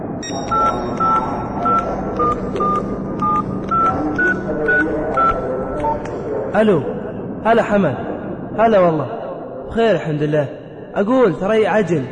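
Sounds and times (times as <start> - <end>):
speech: 0.2 - 1.4, 6.6 - 12.1
telephone number dialed as keypad tones: 0.2 - 6.1.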